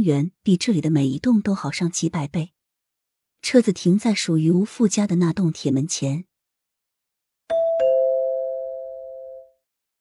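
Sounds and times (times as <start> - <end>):
speech: 0.0 - 2.6, 3.4 - 6.3
two-tone doorbell chime: 7.5 - 9.6.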